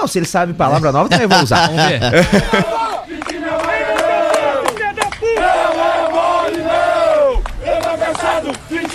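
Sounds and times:
speech: 0.0 - 2.9
laughter: 0.7 - 3.9
football fans chanting at players: 2.2 - 8.9.

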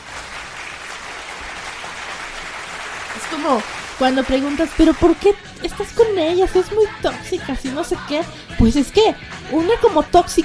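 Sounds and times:
applause: 0.0 - 5.4
speech: 3.2 - 10.4.

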